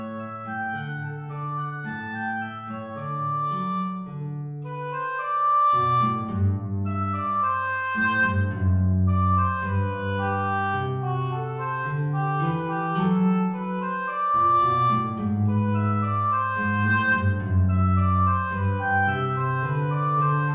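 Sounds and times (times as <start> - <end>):
oboe playing andantino: 0.0 - 20.5.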